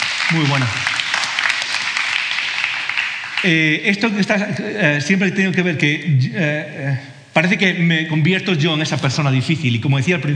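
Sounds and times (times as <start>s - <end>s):
audience applause: 0.0s - 3.8s
speech: 0.3s - 1.0s, 3.4s - 10.3s.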